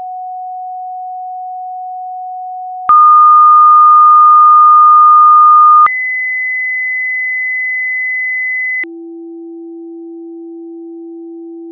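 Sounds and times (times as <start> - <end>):
tone: 2.9 - 8.9.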